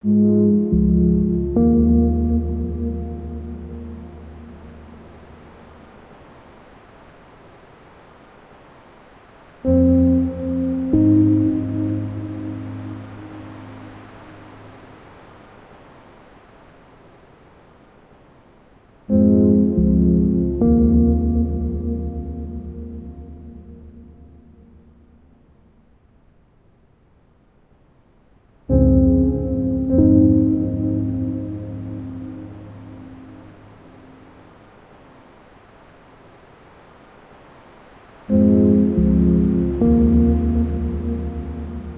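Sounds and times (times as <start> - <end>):
music: 0.0 - 5.1, 9.7 - 14.0, 19.1 - 24.9, 28.7 - 33.6, 38.3 - 41.9.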